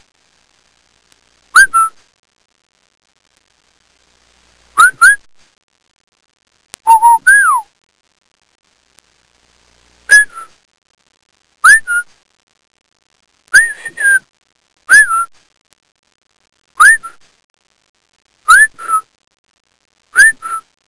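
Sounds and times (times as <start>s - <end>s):
various whistles: 1.6s - 2.0s, 4.8s - 5.3s, 6.8s - 7.7s, 10.1s - 10.6s, 11.6s - 12.2s, 13.5s - 14.3s, 14.9s - 15.4s, 16.8s - 17.2s, 18.5s - 19.1s, 20.1s - 20.8s.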